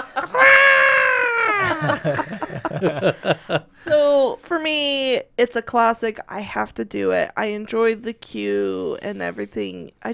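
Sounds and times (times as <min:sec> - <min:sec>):
laughter: 0:00.0 - 0:04.1
voice imitating a yodeling banshee scream: 0:00.2 - 0:02.1
speech: 0:01.8 - 0:10.1.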